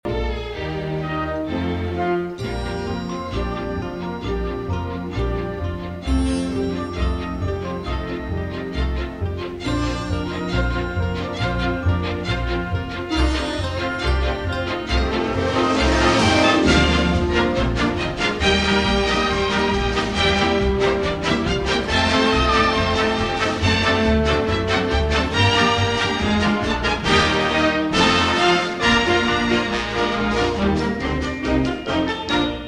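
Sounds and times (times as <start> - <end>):
instrumental music: 0.1 - 32.6.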